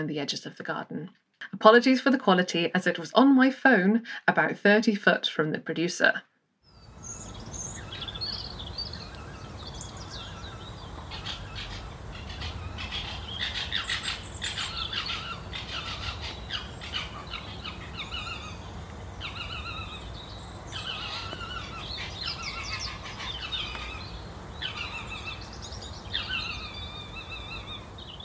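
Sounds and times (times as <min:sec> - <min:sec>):
speech: 0:00.0 - 0:06.3
foxes calling at night: 0:07.0 - 0:28.0.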